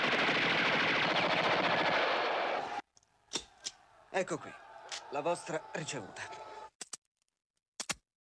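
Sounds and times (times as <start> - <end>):
machine gun fire: 0.0 - 2.6
speech: 4.2 - 6.3.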